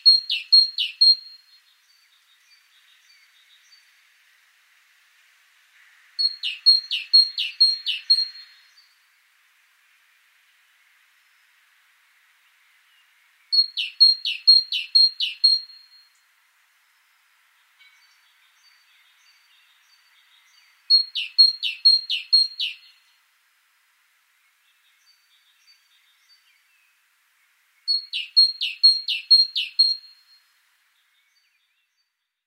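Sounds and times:
great tit two-note phrases: 0:00.0 - 0:03.9, 0:06.2 - 0:08.9, 0:13.5 - 0:16.0, 0:17.0 - 0:23.0, 0:27.9 - 0:30.4.

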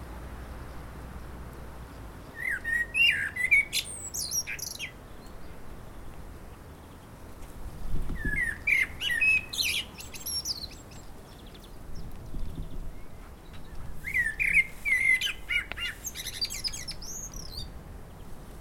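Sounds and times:
common blackbird Turdus merula singing: 0:02.3 - 0:06.1, 0:08.1 - 0:17.7.

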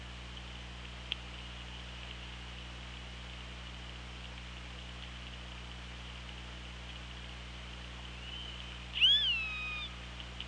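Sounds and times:
low hum: 0:00.0 - 0:10.4
killer whale tonal call: 0:08.2 - 0:10.0.

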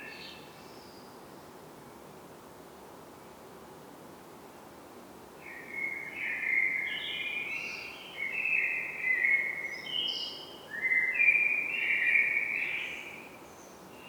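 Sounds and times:
common blackbird singing: 0:05.5 - 0:13.2.

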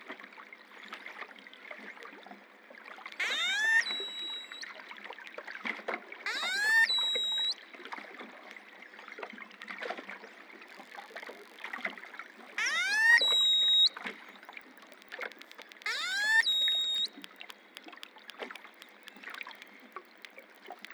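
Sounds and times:
long-finned pilot whale calls: 0:03.2 - 0:04.8, 0:06.3 - 0:07.6, 0:12.6 - 0:14.4, 0:15.8 - 0:17.4.

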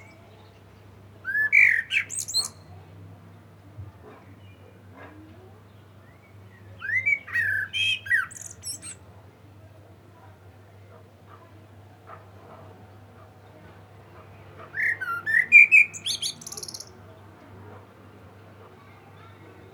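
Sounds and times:
common blackbird singing fluted whistles and twitters: 0:01.3 - 0:02.7, 0:06.1 - 0:09.0, 0:14.8 - 0:16.9.

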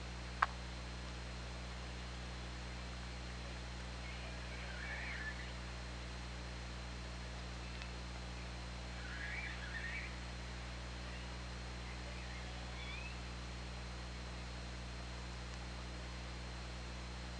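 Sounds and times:
deep steady hum: 0:00.0 - 0:17.3
orca vocalisations, pulsed squeals and rising whistle: 0:04.0 - 0:05.5, 0:09.0 - 0:10.2, 0:12.1 - 0:13.2.

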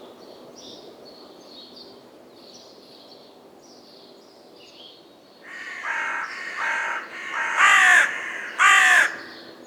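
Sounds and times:
carrion crow Corvus corone calling in harsh caws: 0:05.5 - 0:09.6.

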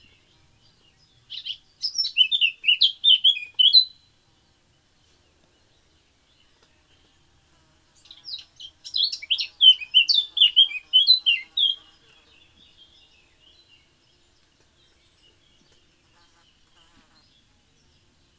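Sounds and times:
Eurasian blackcap warbling song: 0:00.0 - 0:04.1, 0:08.0 - 0:18.3.

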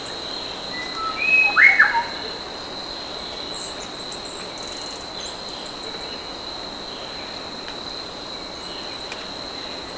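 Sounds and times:
bird calling with sweeping whistled notes: 0:00.8 - 0:02.2.

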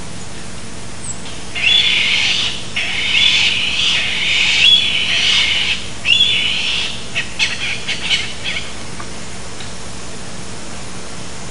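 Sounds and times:
bird raspy calls: 0:01.0 - 0:08.9.

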